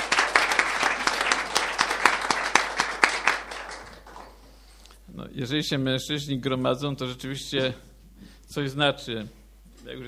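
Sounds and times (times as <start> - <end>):
audience applause: 0.0 - 4.6
speech: 5.4 - 7.9, 8.5 - 10.0.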